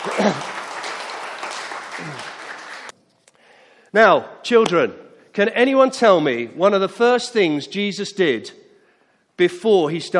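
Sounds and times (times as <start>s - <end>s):
audience applause: 0.0s - 2.9s
speech: 0.2s - 0.5s, 2.0s - 2.3s, 3.9s - 8.6s, 9.4s - 10.1s.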